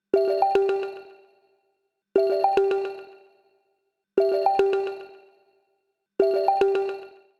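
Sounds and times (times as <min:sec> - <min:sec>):
pop ringtone: 0:00.2 - 0:01.2, 0:02.2 - 0:03.2, 0:04.2 - 0:05.2, 0:06.2 - 0:07.2.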